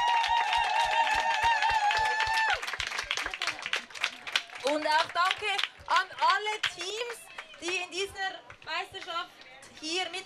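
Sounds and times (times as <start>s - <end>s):
audience applause: 0.0s - 5.8s
speech: 4.8s - 10.2s.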